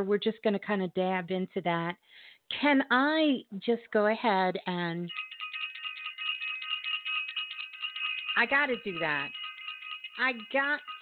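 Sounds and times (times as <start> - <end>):
speech: 0.0 - 5.4, 8.4 - 9.4, 10.2 - 10.9
bell ringing rapidly: 5.0 - 11.0.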